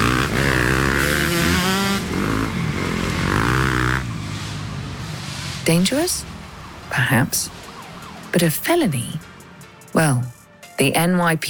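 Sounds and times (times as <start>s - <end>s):
dirt bikes revving in city traffic: 0.0s - 10.2s
speech: 5.7s - 6.3s, 6.9s - 7.6s, 8.4s - 9.3s, 9.9s - 11.4s.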